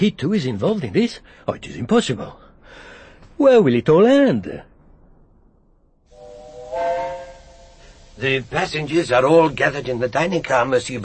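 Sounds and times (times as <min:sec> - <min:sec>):
speech: 0:00.0 - 0:04.7, 0:08.2 - 0:11.0
steam locomotive whistle hissing: 0:06.1 - 0:08.9
steam locomotive getting up steam: 0:06.1 - 0:11.0.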